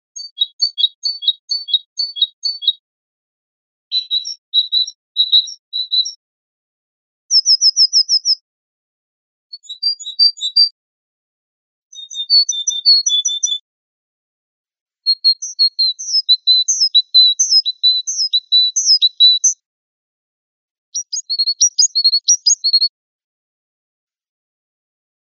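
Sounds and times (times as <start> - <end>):
great tit singing in spring: 0.2 - 2.8, 3.9 - 6.2, 7.3 - 8.4, 11.9 - 13.6, 15.1 - 19.6, 21.0 - 22.9.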